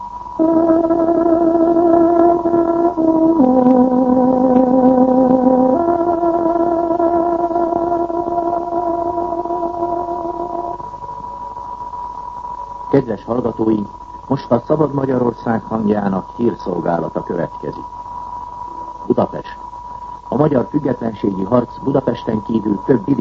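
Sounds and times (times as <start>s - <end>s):
tárogató playing the radio time signal: 0.4s - 11.0s
speech: 13.2s - 18.0s, 19.1s - 19.6s, 20.3s - 23.1s.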